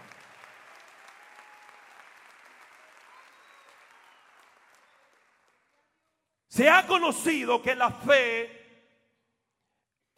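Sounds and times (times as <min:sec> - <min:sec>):
audience applause: 0:00.0 - 0:05.8
speech: 0:06.5 - 0:08.6.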